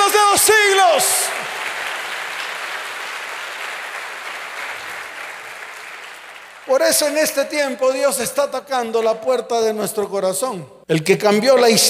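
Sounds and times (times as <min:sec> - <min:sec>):
audience applause: 0:00.0 - 0:07.2
speech: 0:06.7 - 0:11.8.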